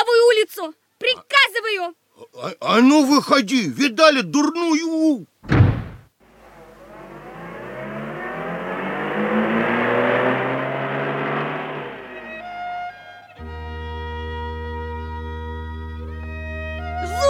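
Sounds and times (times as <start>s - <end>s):
speech: 0.4s - 5.7s
car driving away: 6.2s - 14.3s.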